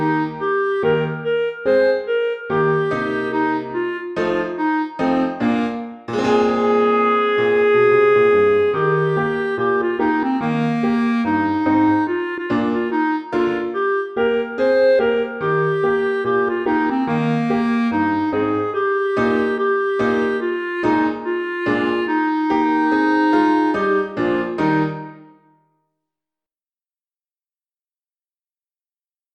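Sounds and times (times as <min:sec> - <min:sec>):
clarinet: 0:00.0 - 0:25.6
piano: 0:00.0 - 0:25.6.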